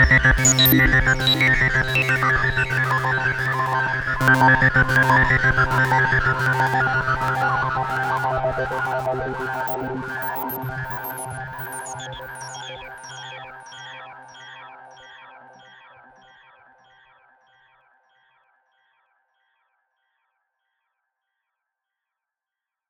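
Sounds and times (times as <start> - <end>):
MOOG MAVIS synthesizer bubble sounds with RE 301 tape echo: 0.0 - 13.3.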